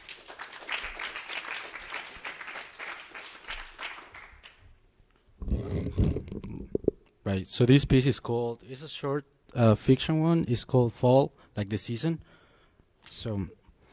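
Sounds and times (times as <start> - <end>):
audience applause for next reader: 0.0 - 4.6
speech: 7.3 - 12.4, 13.0 - 13.6.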